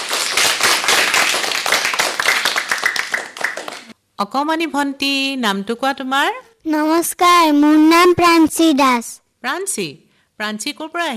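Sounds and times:
audience clapping at a children's singing gathering: 0.0 - 3.9
speech: 4.2 - 11.1.

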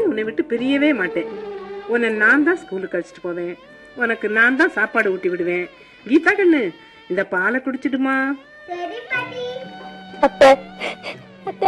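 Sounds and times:
speech: 0.2 - 9.6, 10.2 - 11.6
woman crying: 10.5 - 11.3.

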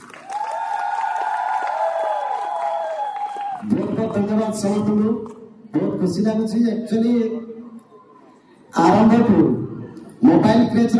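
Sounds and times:
crowd cheering at a gathering on farming: 0.0 - 4.0
speech: 3.6 - 7.4, 9.0 - 9.6, 10.5 - 10.9.

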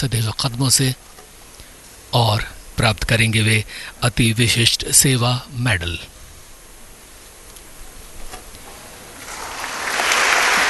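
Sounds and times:
speech: 0.0 - 1.2, 2.1 - 6.2
audience applause for soldier: 9.1 - 10.6.

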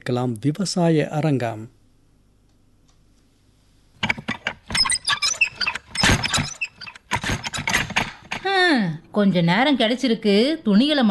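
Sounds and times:
speech: 0.0 - 1.8, 9.2 - 11.0
house door rattling and shaking: 4.0 - 8.5.

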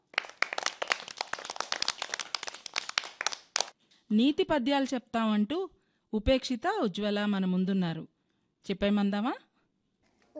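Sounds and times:
audience clapping after a poem recitation: 0.0 - 3.8
speech: 4.1 - 9.4.

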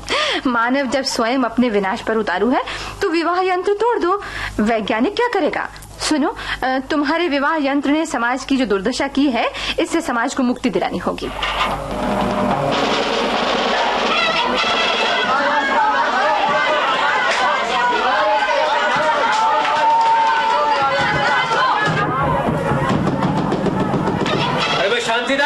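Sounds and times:
speech: 0.4 - 12.8
approaching crowd of people chattering: 11.3 - 25.4
loud shouts: 13.5 - 25.4.

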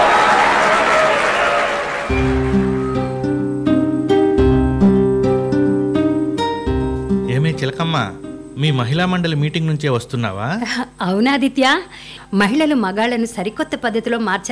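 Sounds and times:
group clapping: 0.0 - 3.3
music: 2.0 - 9.8
speech: 7.7 - 14.4.

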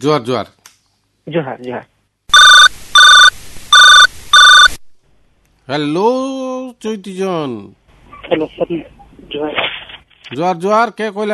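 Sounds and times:
speech: 0.0 - 0.6, 1.3 - 1.9, 5.7 - 11.3
telephone ringing for an incoming caller: 2.3 - 4.8.

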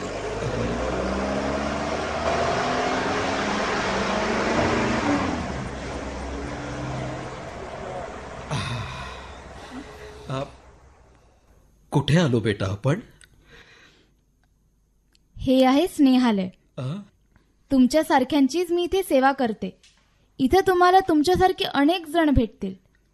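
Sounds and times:
car engine rumble: 0.0 - 11.6
road noise: 0.0 - 11.6
speech: 12.1 - 13.1, 15.4 - 17.1, 17.7 - 22.8.

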